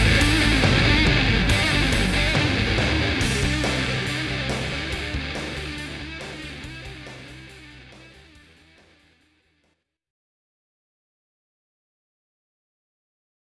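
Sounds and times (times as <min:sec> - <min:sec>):
classic fuzz guitar tone: 0:00.0 - 0:09.2.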